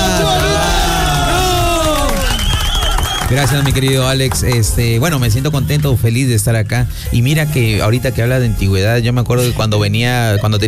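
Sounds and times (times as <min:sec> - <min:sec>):
audience applause: 0:00.0 - 0:05.0
speech: 0:03.3 - 0:10.6.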